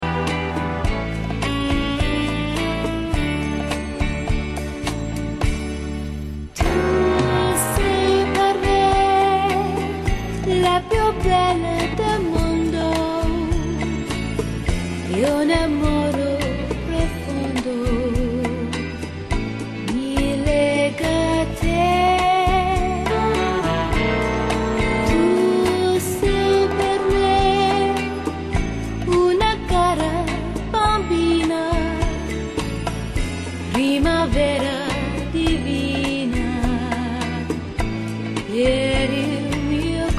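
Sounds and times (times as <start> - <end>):
rumba music: 0.0 - 18.0, 18.6 - 40.0.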